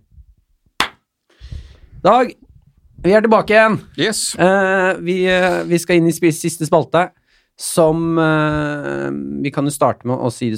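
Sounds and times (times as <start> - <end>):
hand clap: 0.8 - 1.0
speech: 2.0 - 2.4, 3.0 - 10.5.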